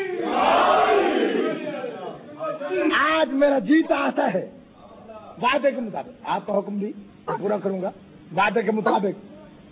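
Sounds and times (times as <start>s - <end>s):
crowd chanting a religious slogan: 0.2s - 2.2s
speech: 2.7s - 4.6s, 5.4s - 9.3s.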